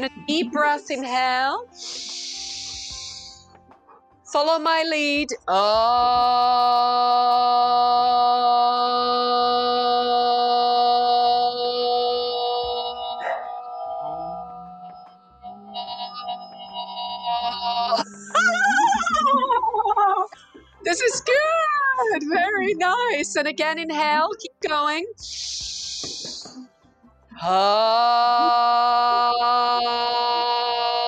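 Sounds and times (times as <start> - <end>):
speech: 0.0 - 2.2, 4.3 - 9.5, 21.0 - 25.5, 27.4 - 30.7
group chanting: 6.2 - 15.5
laughter: 15.7 - 23.3.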